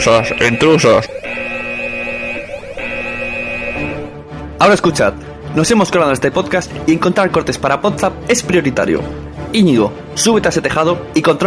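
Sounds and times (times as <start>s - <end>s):
speech: 0.0s - 1.3s, 4.6s - 11.4s
harsh buzzing electronic alarm: 0.0s - 4.2s.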